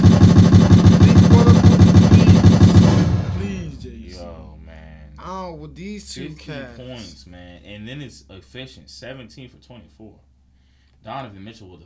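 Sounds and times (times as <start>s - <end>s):
gunshot sound effects: 0.0s - 3.8s
speech: 5.7s - 10.3s, 11.0s - 11.8s.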